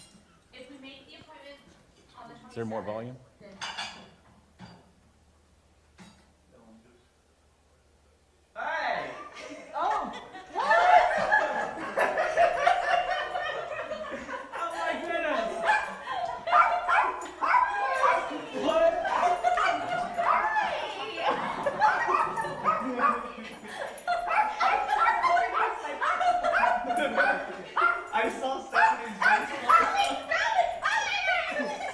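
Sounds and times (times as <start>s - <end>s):
speech: 2.6s - 3.3s
excited overlapping voices: 8.6s - 31.9s
laughter: 9.1s - 30.7s, 31.4s - 31.9s
dog yipping barking and whimpering: 15.6s - 23.3s, 24.1s - 31.4s.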